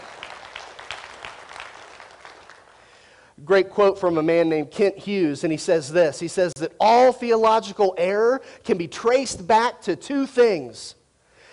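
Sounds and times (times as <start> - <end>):
crowd clapping: 0.0 - 3.0
speech: 3.5 - 11.0.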